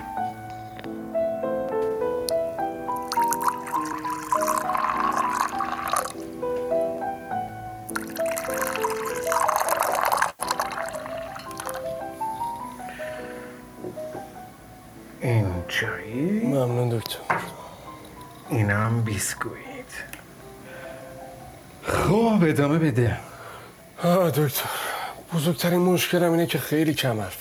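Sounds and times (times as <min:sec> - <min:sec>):
soft music: 0:00.0 - 0:27.3
tea poured by a doctor into two cups: 0:03.0 - 0:06.2, 0:07.9 - 0:12.0
speech: 0:18.5 - 0:20.2, 0:22.1 - 0:23.3, 0:24.0 - 0:27.3.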